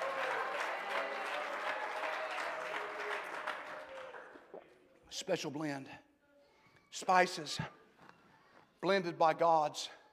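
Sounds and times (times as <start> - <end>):
audience clapping hands: 0.0 - 4.7
speech: 5.2 - 6.1, 7.0 - 7.8, 8.8 - 10.0.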